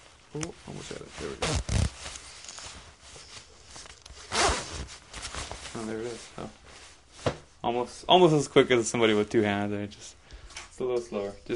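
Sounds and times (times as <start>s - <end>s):
fabric rustling: 0.0s - 7.6s
speech: 0.3s - 2.2s, 5.8s - 6.6s, 7.6s - 10.2s, 10.8s - 11.5s
zipper being zipped up with a hook: 1.2s - 2.7s, 4.2s - 5.0s.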